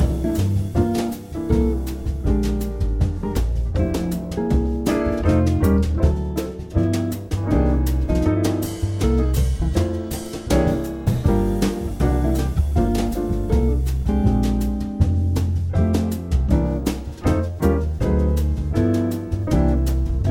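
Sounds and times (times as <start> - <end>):
instrumental jazz music: 0.0 - 20.2.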